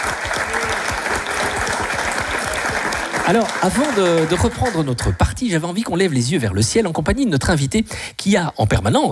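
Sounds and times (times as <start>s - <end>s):
live audience applauding: 0.0s - 5.4s
speech: 3.3s - 9.0s.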